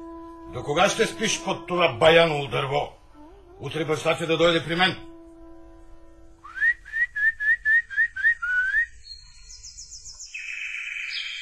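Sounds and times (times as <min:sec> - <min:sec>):
speech: 0:00.5 - 0:03.0, 0:03.6 - 0:05.1
person whistling imitating nightingale song: 0:06.4 - 0:11.4.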